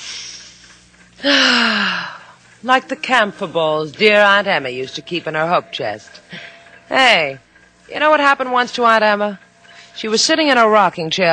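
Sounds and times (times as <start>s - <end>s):
person sniffing through the nose: 0.0s - 0.6s
loud hissing exhale with low voiced hum: 0.0s - 2.4s
speech: 1.2s - 1.7s, 2.6s - 9.4s, 10.0s - 11.3s.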